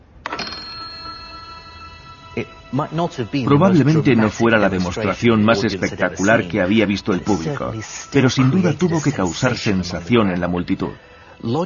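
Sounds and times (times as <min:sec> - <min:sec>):
bell ringing: 0:00.3 - 0:06.1
speech: 0:02.4 - 0:11.6.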